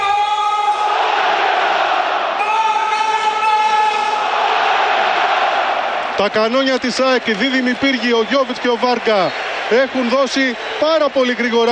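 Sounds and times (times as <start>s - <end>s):
packed football stadium crowd chanting: 0.7s - 3.2s, 3.9s - 6.2s
speech: 6.2s - 11.7s.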